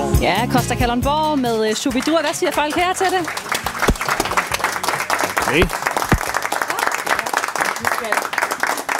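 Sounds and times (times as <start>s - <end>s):
speech: 0.2s - 3.7s, 5.5s - 5.8s
audience applause: 1.4s - 8.9s.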